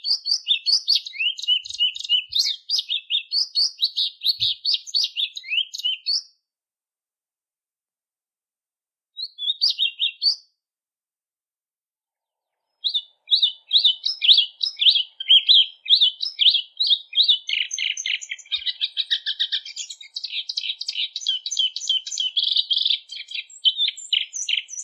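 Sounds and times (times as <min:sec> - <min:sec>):
plumbeous seedeater singing whistles and buzzy trills: 0:00.0 - 0:06.3, 0:09.2 - 0:10.5, 0:12.7 - 0:24.8.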